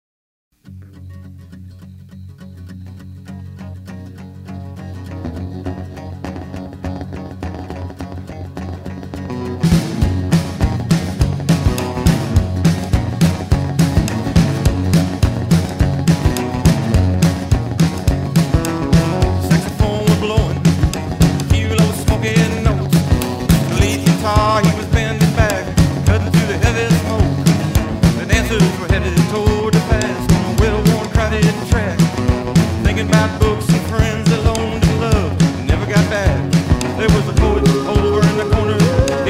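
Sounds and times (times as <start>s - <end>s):
rock and roll band playing: 3.2s - 39.2s.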